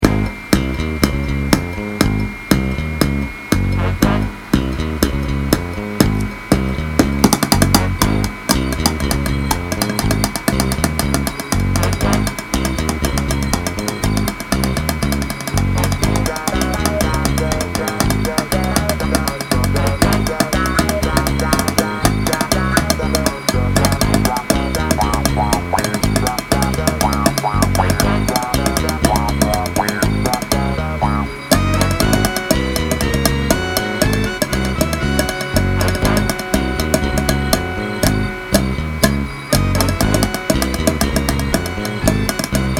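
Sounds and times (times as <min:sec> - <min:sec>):
bass: 0:00.0 - 0:42.7.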